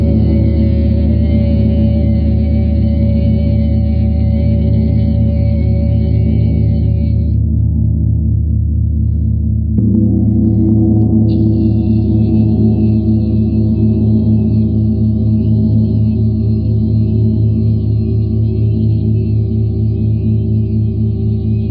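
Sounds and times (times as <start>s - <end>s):
planetary gongs droning: 0.0s - 21.7s
planetary gong strike: 9.8s - 13.2s.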